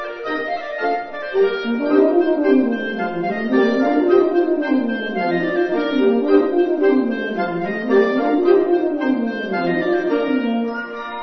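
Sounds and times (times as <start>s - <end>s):
Russian folk songs: 0.2s - 10.9s.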